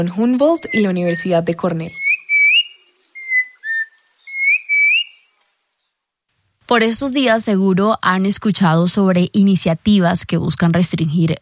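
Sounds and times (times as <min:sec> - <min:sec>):
speech: 0:00.0 - 0:02.0, 0:06.7 - 0:11.4
faint steady high hiss: 0:00.1 - 0:07.7
mountain troupial singing: 0:00.5 - 0:05.5.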